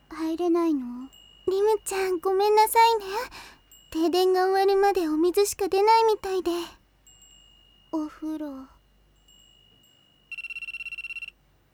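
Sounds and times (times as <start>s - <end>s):
speech: 0.3s - 6.8s, 7.9s - 8.7s
electronic ringtone of a telephone with an incoming call: 10.3s - 11.4s.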